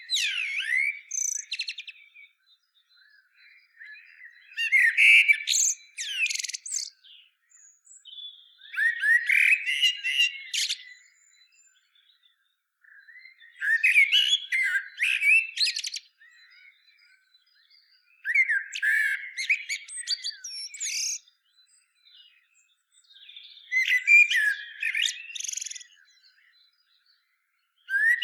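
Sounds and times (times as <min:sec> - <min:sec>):
common blackbird song: 0:00.0 - 0:28.2.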